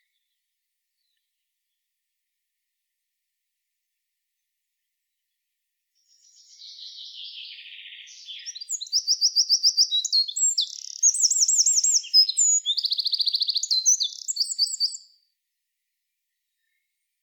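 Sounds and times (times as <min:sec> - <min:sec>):
Eurasian wren song: 0:06.1 - 0:15.1.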